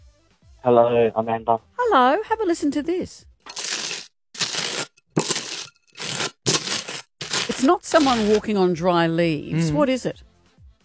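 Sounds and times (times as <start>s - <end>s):
speech: 0.6s - 3.3s, 7.6s - 10.3s
butter spread on toast: 3.5s - 8.5s.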